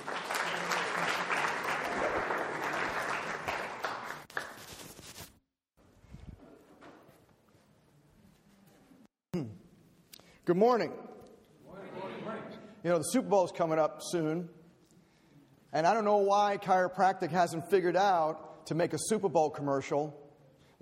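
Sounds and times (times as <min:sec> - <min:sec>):
audience applause welcoming a guest speaker at a university morning lecture: 0:00.0 - 0:04.6
speech: 0:10.5 - 0:11.0, 0:12.8 - 0:14.6, 0:15.7 - 0:20.2.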